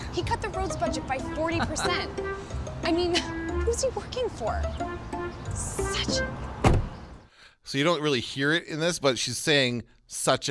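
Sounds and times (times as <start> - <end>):
speech: 0.2 - 6.6, 7.7 - 10.4
door slamming: 6.6 - 7.0.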